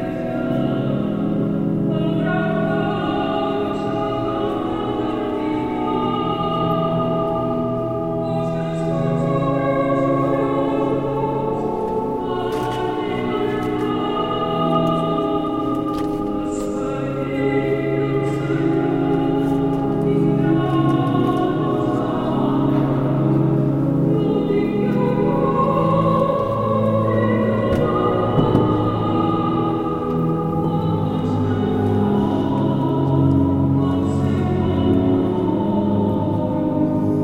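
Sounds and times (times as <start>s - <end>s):
layered sustained tones at a service in the Basilica Santa Maria Del Mar: 0.0s - 36.8s
brief knocks: 27.7s - 28.8s.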